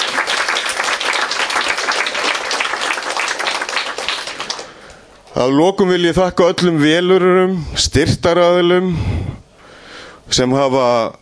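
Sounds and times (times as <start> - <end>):
applause for volunteers: 0.0 - 5.0
speech: 5.4 - 9.3, 10.4 - 11.1.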